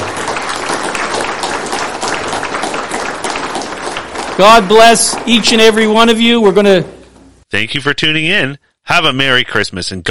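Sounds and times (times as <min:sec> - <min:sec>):
audience clapping: 0:00.0 - 0:06.8
speech: 0:04.4 - 0:10.0.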